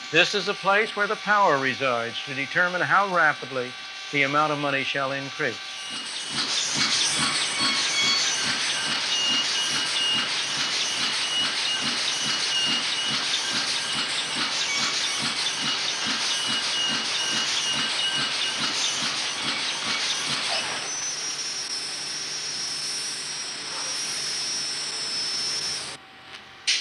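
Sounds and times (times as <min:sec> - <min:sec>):
money printing presses running: 0:00.0 - 0:21.2
speech: 0:00.1 - 0:06.5.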